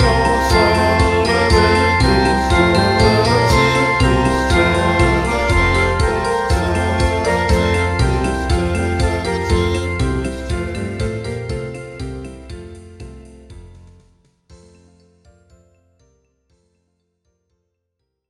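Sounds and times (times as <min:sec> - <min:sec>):
voices singing a circus song round: 0:00.0 - 0:11.4.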